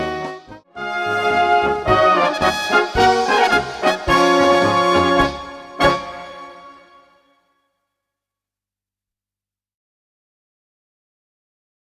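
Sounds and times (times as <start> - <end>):
brass band music: 0.8 - 7.3.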